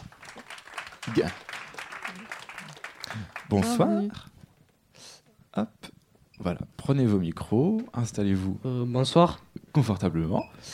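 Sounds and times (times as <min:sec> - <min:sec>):
audience applause: 0:00.0 - 0:04.1
speech: 0:01.1 - 0:01.5, 0:03.2 - 0:04.3, 0:05.6 - 0:05.8, 0:06.4 - 0:10.7.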